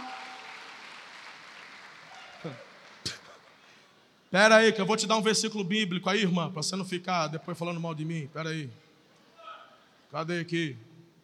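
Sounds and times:
men applauding: 0.0s - 3.7s
speech: 2.4s - 2.6s, 4.3s - 8.8s, 10.1s - 10.9s.

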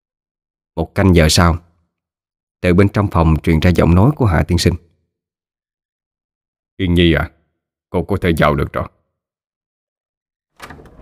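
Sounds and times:
speech: 0.8s - 1.7s, 2.6s - 4.9s, 6.8s - 9.0s
door being opened into a room: 10.6s - 11.0s.

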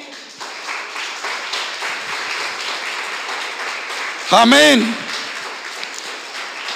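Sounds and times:
audience applause: 0.0s - 6.7s
speech: 4.3s - 5.0s.

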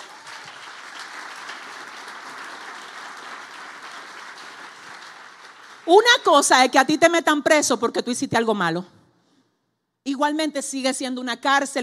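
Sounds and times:
audience applause: 0.0s - 6.0s
speech: 5.9s - 9.0s, 10.2s - 11.8s.

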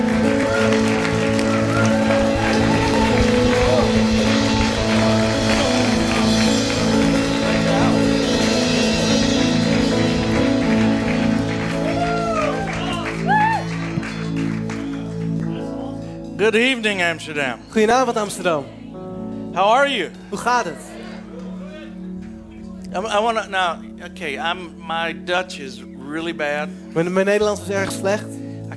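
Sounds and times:
crowd applauding: 0.0s - 16.0s
crowd whooping: 0.1s - 8.0s, 11.6s - 15.1s
speech: 16.5s - 18.8s, 19.6s - 20.9s, 23.0s - 28.4s.

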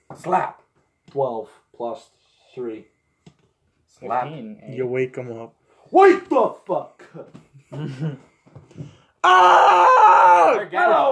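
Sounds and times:
speech: 0.1s - 2.9s, 4.0s - 11.1s
voice acting muffled screaming through a gag: 9.2s - 10.7s
loud scream: 9.2s - 11.1s.

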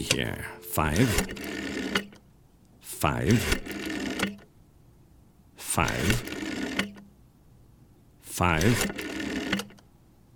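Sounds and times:
speech: 0.0s - 2.1s, 3.0s - 3.7s, 5.8s - 6.4s, 8.4s - 9.1s
rotary phone dial whirring and ratcheting back: 3.3s - 4.5s, 5.8s - 7.1s, 8.6s - 9.9s.

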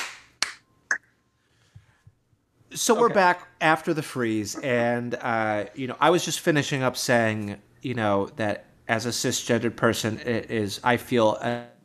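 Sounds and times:
people clapping: 0.0s - 0.6s
speech: 2.8s - 11.8s.

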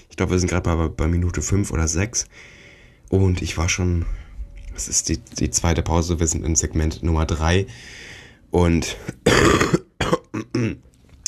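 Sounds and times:
speech: 0.1s - 4.2s, 4.8s - 10.9s
cough: 9.2s - 10.8s.

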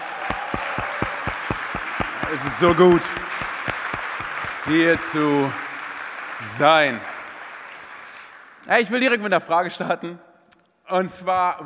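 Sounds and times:
audience applauding: 0.0s - 8.5s
speech: 2.3s - 3.2s, 4.7s - 5.6s, 6.4s - 7.1s, 8.7s - 10.3s, 10.9s - 11.6s.

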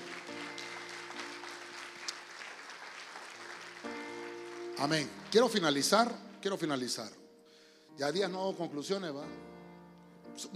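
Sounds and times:
audience clapping loudly: 0.0s - 6.6s
speech: 4.8s - 7.2s, 8.0s - 9.5s, 10.4s - 10.5s.

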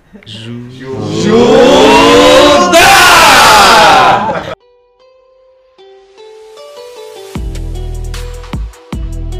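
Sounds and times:
speech: 0.1s - 1.5s
group shouting a battle cry: 0.8s - 4.6s.

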